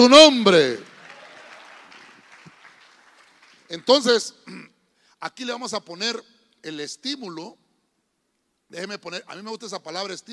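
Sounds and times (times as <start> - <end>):
speech: 0.0 - 0.8, 3.7 - 7.6, 8.7 - 10.3
people clapping: 0.5 - 4.1.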